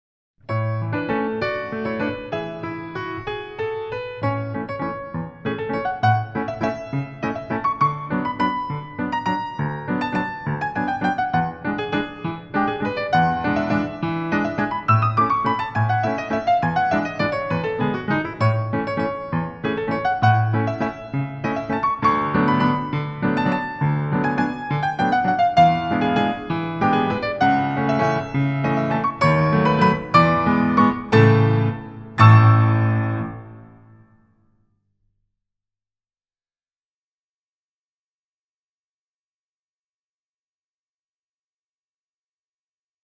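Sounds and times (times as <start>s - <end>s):
grand allegro ballet music: 0.5s - 34.1s.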